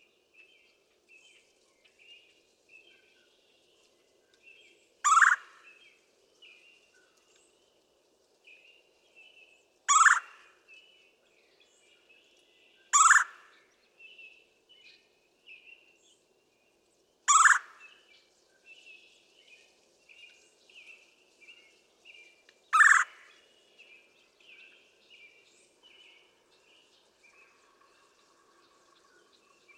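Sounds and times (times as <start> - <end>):
Red-bellied Woodpecker: 5.0 - 5.6, 9.9 - 10.5, 12.9 - 13.5, 17.3 - 17.9, 22.7 - 23.4.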